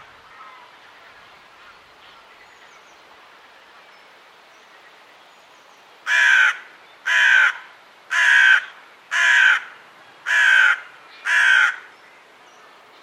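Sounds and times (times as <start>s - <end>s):
bird giving harsh hoarse cawing calls: 6.1s - 11.9s.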